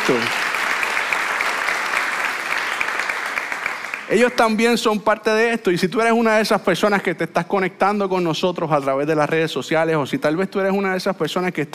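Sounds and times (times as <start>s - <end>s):
audience giving loud applause: 0.0s - 4.2s
speech: 0.1s - 0.4s, 4.1s - 11.7s.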